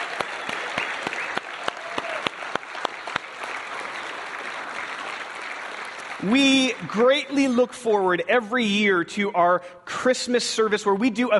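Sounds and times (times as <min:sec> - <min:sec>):
audience applause: 0:00.0 - 0:07.4
speech: 0:06.2 - 0:11.3.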